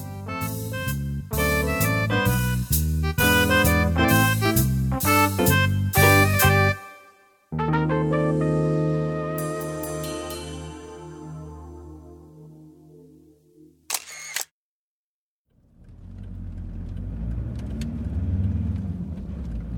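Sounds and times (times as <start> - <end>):
music: 0.0 - 13.9
car engine and road rumble on a drive to the airport: 15.6 - 19.7.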